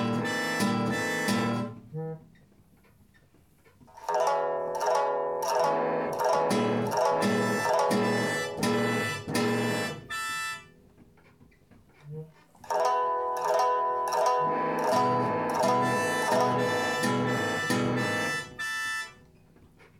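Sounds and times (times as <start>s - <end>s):
harmonium: 0.0s - 2.2s, 4.0s - 10.9s, 12.6s - 19.5s.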